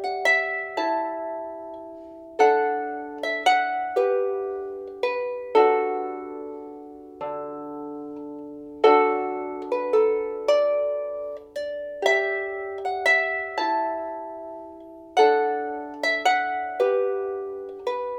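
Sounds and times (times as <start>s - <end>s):
small harps playing a folk tune: 0.0s - 18.1s.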